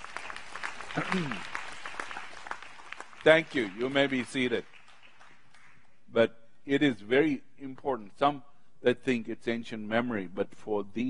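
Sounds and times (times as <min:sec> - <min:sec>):
audience applause: 0:00.0 - 0:05.8
speech: 0:01.0 - 0:01.6, 0:03.2 - 0:04.7, 0:06.1 - 0:11.0.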